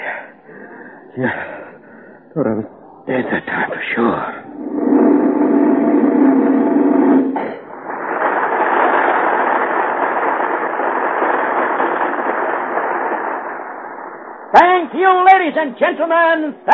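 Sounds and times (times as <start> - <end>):
speech: 1.2 - 1.6, 2.3 - 5.0, 14.9 - 16.7
firework going off: 4.5 - 15.6.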